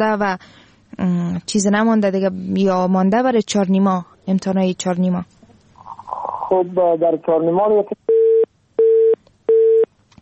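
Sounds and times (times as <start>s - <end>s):
speech: 0.0s - 5.4s, 6.5s - 8.0s
telephone busy tone beeps after a call to a radio show is cut off: 8.1s - 9.9s.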